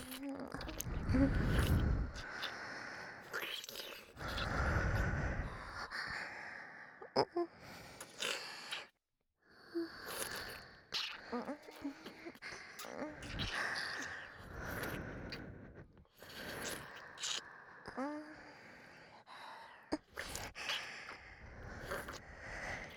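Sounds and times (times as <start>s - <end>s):
wet sucking sounds: 0.0s - 5.9s, 9.8s - 18.9s, 19.9s - 22.9s
breathing in both ears: 0.6s - 3.4s, 4.2s - 22.9s.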